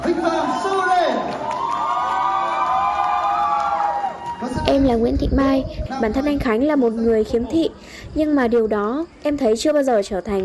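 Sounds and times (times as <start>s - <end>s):
crowd cheering to welcome a competition winner: 0.0s - 4.8s
speech: 4.7s - 10.4s.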